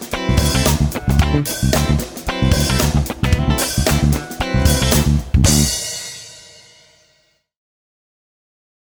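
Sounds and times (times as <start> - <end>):
funk riffs: 0.0 - 6.5.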